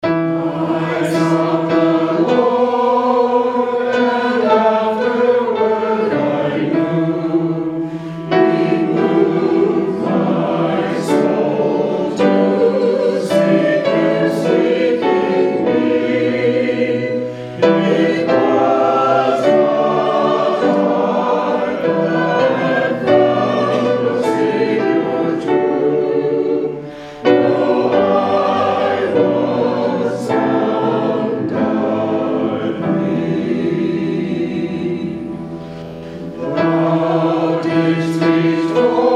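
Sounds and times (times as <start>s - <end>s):
hymn: 0.0s - 39.1s.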